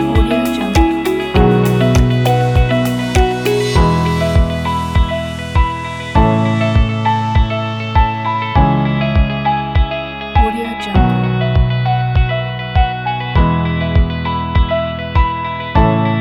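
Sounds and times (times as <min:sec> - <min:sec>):
calm corporate music: 0:00.0 - 0:16.2.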